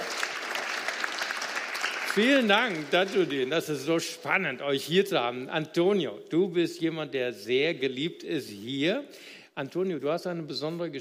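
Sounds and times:
audience applause: 0.0 - 3.4
speech: 2.2 - 10.9.

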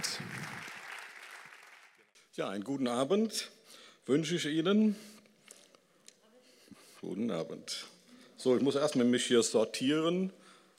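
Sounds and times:
warm audience applause: 0.0 - 2.0
speech: 2.4 - 5.2, 7.0 - 10.4.

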